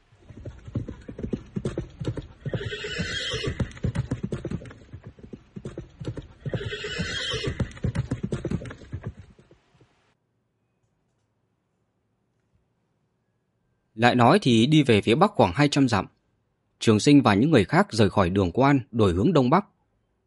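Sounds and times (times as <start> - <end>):
horses galloping: 0.0 - 10.0
speech: 14.0 - 16.2, 16.8 - 19.7.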